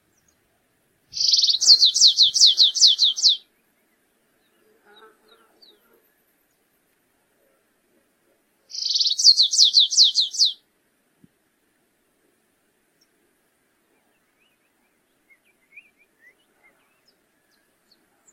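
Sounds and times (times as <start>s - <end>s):
stripe-tailed yellow finch song with buzzing trill and down-slurred notes: 1.2s - 3.4s, 8.7s - 10.6s.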